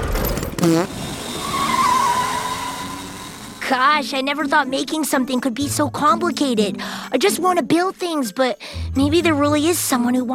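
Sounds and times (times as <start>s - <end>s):
speech: 0.6s - 1.0s, 3.7s - 10.3s
bathtub car speeding away: 0.6s - 3.6s
tires squealing: 0.9s - 3.7s.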